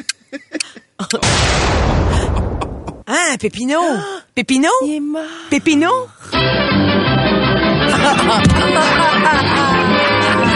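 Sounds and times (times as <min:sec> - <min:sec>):
speech: 0:01.1 - 0:01.8, 0:03.3 - 0:06.7, 0:07.9 - 0:09.8
stolen bomb exploding: 0:01.2 - 0:03.0
laughter: 0:07.9 - 0:10.5.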